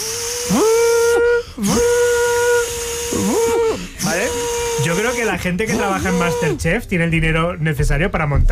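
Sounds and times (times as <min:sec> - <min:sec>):
voice imitating a Minipimer hand blender whipping cream: 0:00.0 - 0:06.8
speech: 0:00.5 - 0:00.7, 0:05.4 - 0:08.5.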